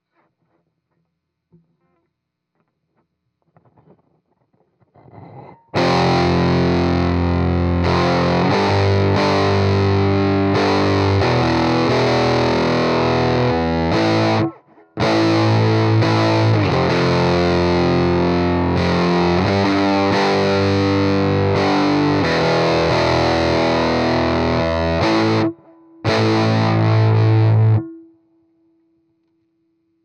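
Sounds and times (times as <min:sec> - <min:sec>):
heavy electric guitar: 0:05.8 - 0:27.9.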